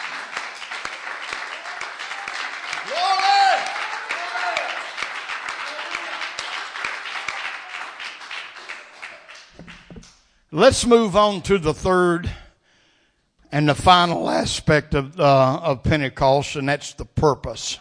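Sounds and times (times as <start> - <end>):
audience clapping hands: 0.0 - 10.2
speech: 10.6 - 12.4, 13.5 - 17.7.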